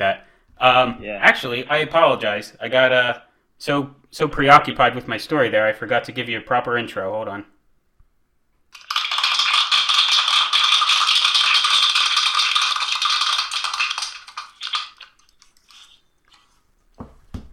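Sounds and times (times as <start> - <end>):
speech: 0.0 - 7.5
applause: 8.8 - 14.4.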